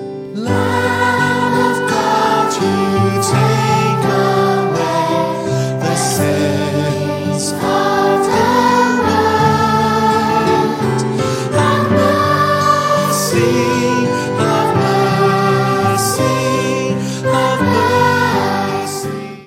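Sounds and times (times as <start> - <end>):
vocals: 0.3 - 19.4.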